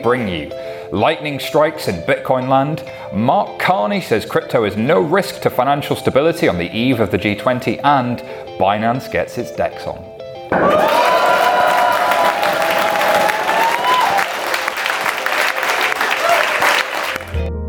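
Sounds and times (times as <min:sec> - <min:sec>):
speech: 0:00.0 - 0:11.0
live audience clapping and cheering: 0:10.5 - 0:17.5.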